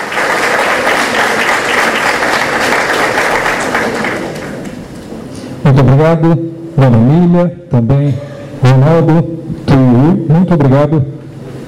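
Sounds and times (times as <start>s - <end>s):
crowd applauding: 0.0s - 4.8s
speech: 5.7s - 11.2s.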